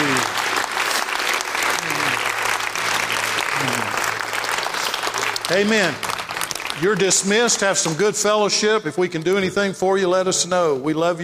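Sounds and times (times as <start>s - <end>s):
congregation hand clapping: 0.0s - 8.5s
speech: 5.5s - 6.1s, 6.8s - 11.2s.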